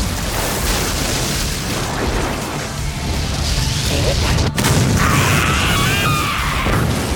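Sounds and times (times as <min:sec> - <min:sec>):
sharp crackling crack: 0:00.0 - 0:07.1
roaring thunder magic spell blast: 0:03.9 - 0:07.1.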